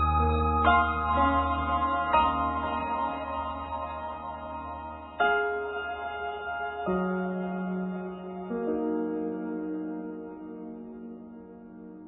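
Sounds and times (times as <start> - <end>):
drone: 0.0 - 6.7
piano melody: 0.0 - 12.0.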